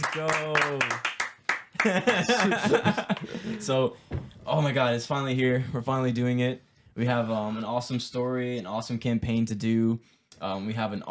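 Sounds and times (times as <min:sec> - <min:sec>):
group clapping: 0:00.0 - 0:03.4
speech: 0:00.1 - 0:01.1, 0:01.8 - 0:11.0
laughter: 0:01.8 - 0:03.9.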